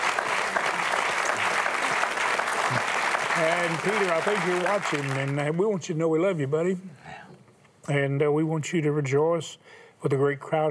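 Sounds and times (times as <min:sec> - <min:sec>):
audience applause: 0:00.0 - 0:05.6
speech: 0:02.7 - 0:07.0, 0:07.9 - 0:10.6.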